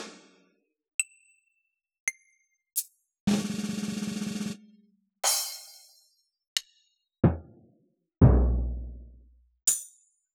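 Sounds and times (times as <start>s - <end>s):
Yamaha DJX 146 keyboard analog drum kit: 3.3s - 4.6s, 7.3s - 7.5s, 8.2s - 9.1s.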